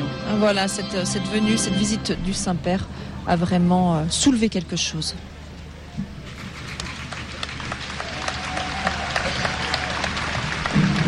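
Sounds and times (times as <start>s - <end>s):
speech: 0.4s - 5.3s
crowd applauding the pope's arrival: 6.3s - 11.0s.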